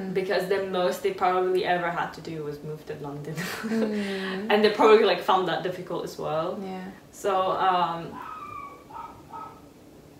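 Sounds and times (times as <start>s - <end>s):
speech: 0.2s - 8.3s
dog whining yips: 8.2s - 9.7s.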